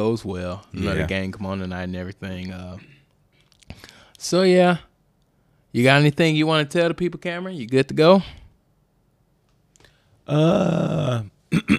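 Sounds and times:
speech: 0:00.0 - 0:02.9, 0:04.2 - 0:04.9, 0:05.7 - 0:08.4, 0:10.3 - 0:11.7
throat clearing into the microphone: 0:10.3 - 0:11.7.

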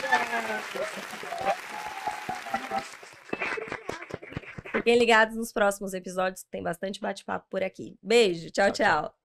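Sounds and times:
audience applause: 0:00.0 - 0:04.8
speech: 0:00.1 - 0:01.9, 0:04.8 - 0:09.2.

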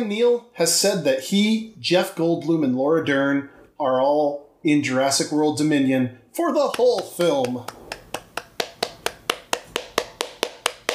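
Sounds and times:
speech: 0:00.0 - 0:07.8
hand clapping: 0:06.7 - 0:10.9.

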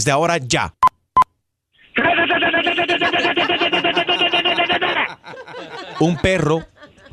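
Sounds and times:
speech: 0:00.0 - 0:00.8, 0:02.4 - 0:07.1
voice imitating machine gun fire: 0:02.0 - 0:05.1
laughter: 0:02.0 - 0:07.1.

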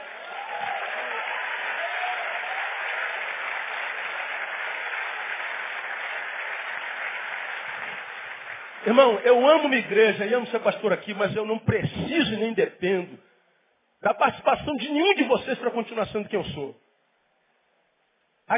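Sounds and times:
audience applauding: 0:00.0 - 0:10.7
speech: 0:08.8 - 0:13.3, 0:14.0 - 0:16.8.

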